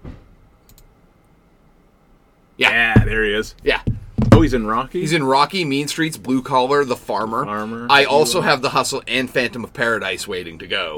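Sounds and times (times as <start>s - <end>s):
computer mouse clicks: 0.6s - 0.9s
speech: 2.6s - 10.9s
soft low thump: 2.9s - 4.8s.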